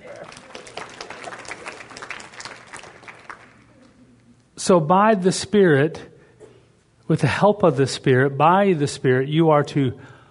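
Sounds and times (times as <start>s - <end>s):
audience applause: 0.0s - 3.8s
speech: 4.7s - 6.1s, 7.1s - 10.1s.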